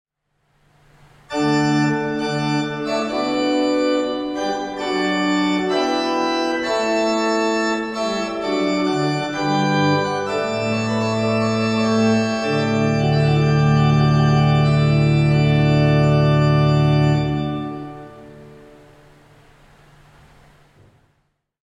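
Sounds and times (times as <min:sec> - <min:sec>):
pipe organ: 0:01.0 - 0:20.7.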